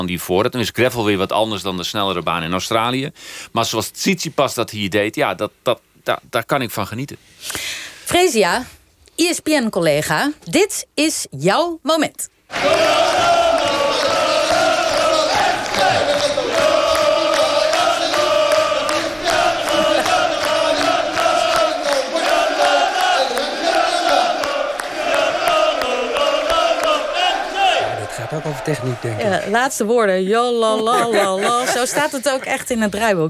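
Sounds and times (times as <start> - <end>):
speech: 0.0 - 13.3, 28.3 - 33.2
football stadium crowd chanting: 12.5 - 29.7
laughter: 13.6 - 22.6, 30.6 - 33.1.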